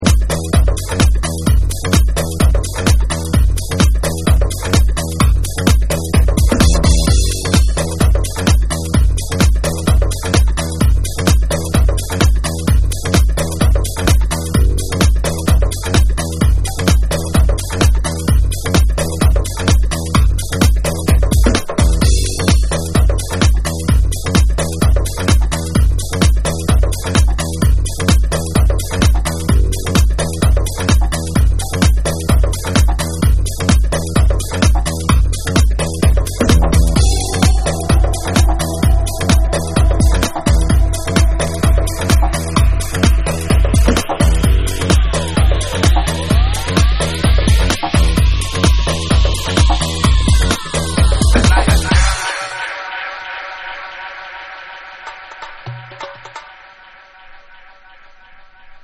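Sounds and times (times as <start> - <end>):
dub music: 0.0 - 58.8.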